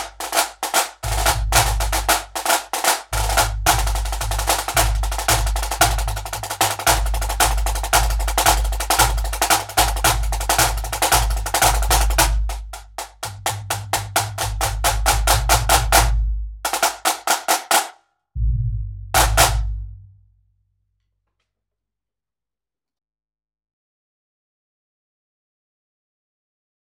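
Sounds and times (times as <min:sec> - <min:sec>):
drum salute: 0:00.0 - 0:20.0.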